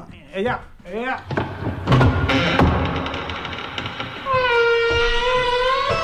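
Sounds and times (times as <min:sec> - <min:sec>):
speech: 0:00.3 - 0:03.1
heavy warehouse door closing: 0:01.2 - 0:06.0.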